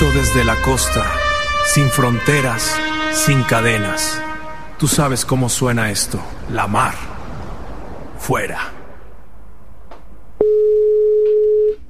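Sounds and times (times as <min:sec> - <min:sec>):
speech: 0:00.2 - 0:07.1, 0:08.3 - 0:08.8
telephone ringback tone while calling: 0:10.4 - 0:11.8.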